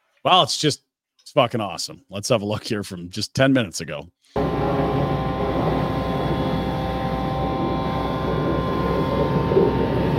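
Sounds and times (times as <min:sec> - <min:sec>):
speech: 0:00.2 - 0:04.4
vacuum truck running at construction site: 0:04.4 - 0:10.1.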